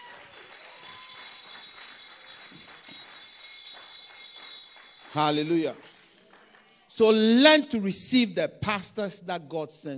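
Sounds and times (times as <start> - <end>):
church audience clapping: 0.0 - 7.0
speech: 5.2 - 5.9, 7.0 - 9.9.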